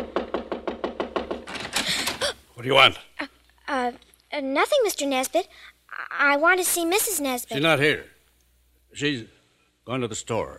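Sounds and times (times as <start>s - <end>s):
rapid knocking on a wooden door: 0.0s - 2.2s
speech: 2.6s - 8.1s, 8.9s - 10.5s.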